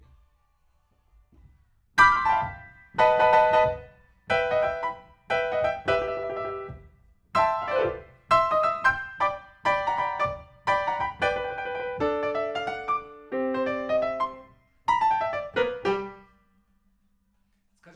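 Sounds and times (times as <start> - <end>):
rock and roll piano: 2.0 - 16.3.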